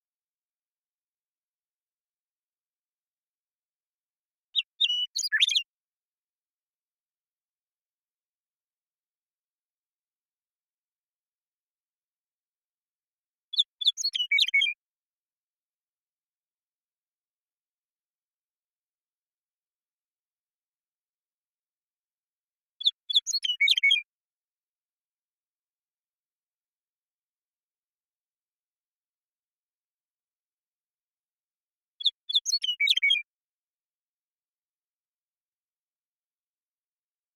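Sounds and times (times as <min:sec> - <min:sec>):
western meadowlark singing: 0:04.6 - 0:05.7, 0:13.5 - 0:14.8, 0:22.8 - 0:24.1, 0:32.0 - 0:33.3.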